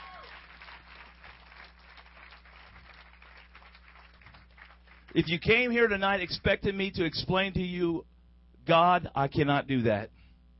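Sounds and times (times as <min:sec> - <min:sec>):
audience hand clapping: 0:00.0 - 0:05.2
speech: 0:05.1 - 0:08.1, 0:08.7 - 0:10.2.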